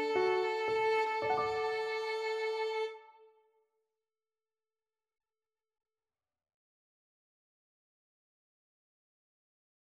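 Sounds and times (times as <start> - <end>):
cello: 0.0 - 3.3
violin: 0.0 - 3.4.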